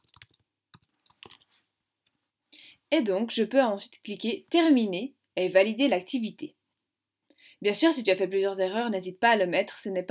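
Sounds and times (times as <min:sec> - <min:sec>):
typing on a computer keyboard during an online French lesson: 0:00.0 - 0:01.5
speech: 0:02.9 - 0:06.6, 0:07.6 - 0:10.1.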